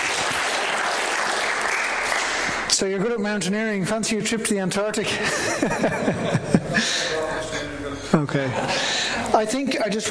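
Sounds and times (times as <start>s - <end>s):
audience applause: 0.0s - 2.7s
speech: 2.8s - 10.0s
laughter: 5.0s - 9.4s.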